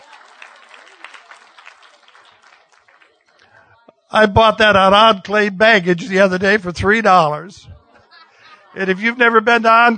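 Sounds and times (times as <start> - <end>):
applause: 0.0 - 3.8
speech: 4.1 - 7.7, 8.8 - 9.9
laughter: 5.8 - 9.9.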